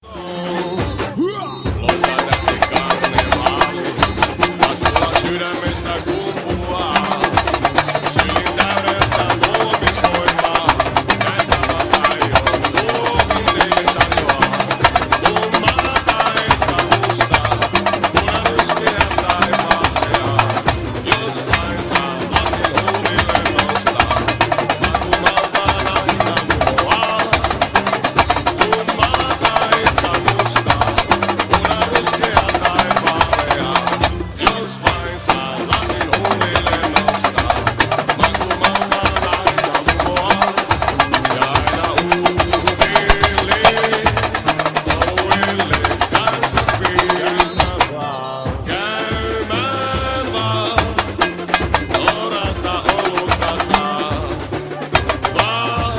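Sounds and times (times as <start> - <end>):
samba tamborim playing: 0.0 - 55.9.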